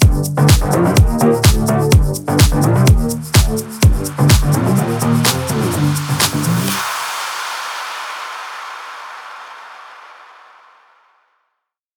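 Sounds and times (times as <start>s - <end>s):
guitar track: 0.0s - 6.8s.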